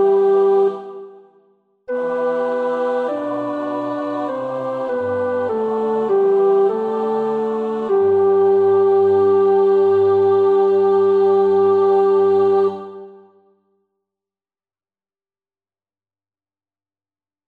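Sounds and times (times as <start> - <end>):
tenor singing: 1.9 - 13.2.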